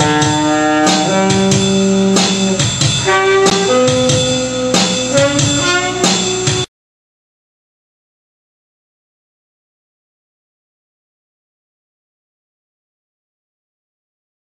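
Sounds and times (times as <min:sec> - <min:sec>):
saxophone rhythm: 0:00.0 - 0:06.7.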